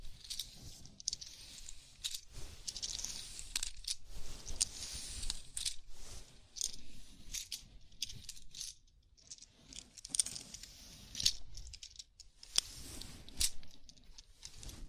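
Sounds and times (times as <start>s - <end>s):
fingers rubbing and scratching through hair in a scalp massage: 0.1s - 14.8s.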